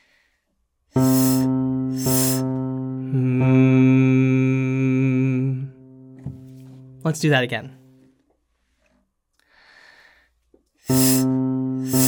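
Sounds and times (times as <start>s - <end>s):
breathy hisses with a steady tone: 1.0s - 2.5s, 10.9s - 12.0s
person humming one pitch: 1.0s - 7.0s, 10.9s - 12.0s
speech: 7.0s - 7.8s.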